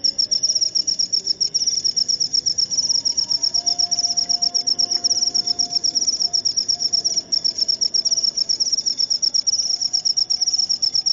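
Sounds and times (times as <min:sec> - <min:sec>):
cricket chirping: 0:00.0 - 0:11.1
faint steady tone: 0:00.0 - 0:11.1.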